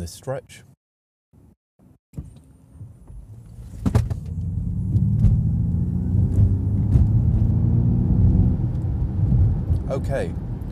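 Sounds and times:
speech: 0.0s - 0.7s, 9.9s - 10.4s
electric car's artificial engine sound accelerating: 4.3s - 9.8s.

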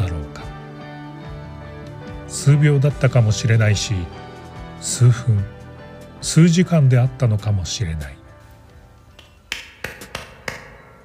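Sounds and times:
speech: 2.3s - 4.3s, 4.9s - 5.6s, 6.2s - 8.2s
dry crisp hand claps: 9.1s - 11.0s.

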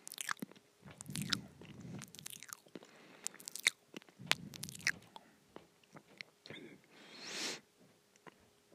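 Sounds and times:
chewing on a chicken nugget: 0.0s - 6.6s.

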